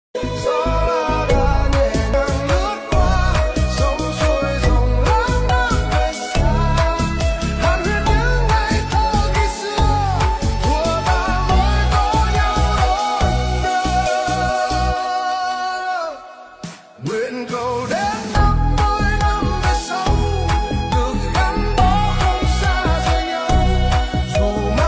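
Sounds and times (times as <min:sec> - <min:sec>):
AI rock cover remix: 0:00.2 - 0:24.8.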